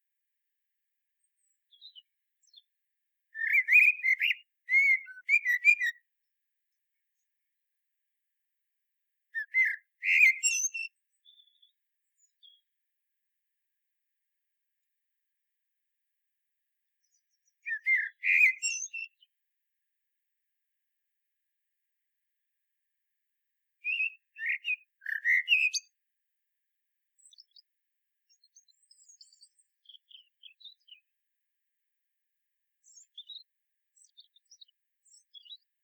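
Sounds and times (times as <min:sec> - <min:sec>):
common blackbird song: 0:01.2 - 0:07.5, 0:09.3 - 0:12.8, 0:16.9 - 0:19.4, 0:23.8 - 0:26.0, 0:27.1 - 0:31.2, 0:32.7 - 0:35.8.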